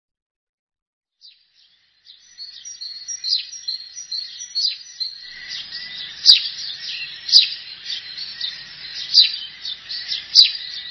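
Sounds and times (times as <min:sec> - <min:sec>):
Eurasian tree sparrow calls: 0:01.2 - 0:10.8.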